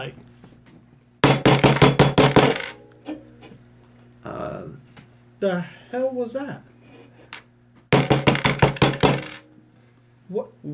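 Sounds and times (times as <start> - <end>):
speech: 0.0 - 0.3, 5.4 - 6.7, 10.3 - 10.7
low steady hum: 0.0 - 10.7
knocking on a door: 1.2 - 2.5, 7.9 - 9.2.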